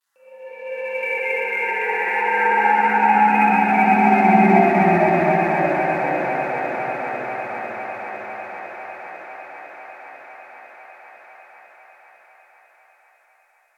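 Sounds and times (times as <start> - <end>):
ambience: 0.2 - 13.0.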